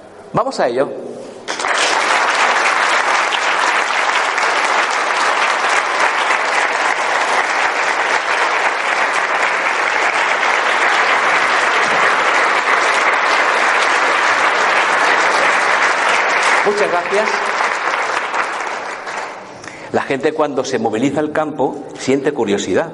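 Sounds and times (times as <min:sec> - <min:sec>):
speech: 0:00.3 - 0:01.3, 0:16.8 - 0:17.5, 0:19.9 - 0:22.9
audience applause: 0:01.5 - 0:19.6.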